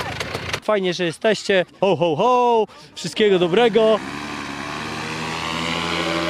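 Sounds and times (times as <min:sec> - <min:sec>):
speech: 0:00.7 - 0:04.2
specially built powered paraglider motor propeller drone on takeoff: 0:03.2 - 0:06.2.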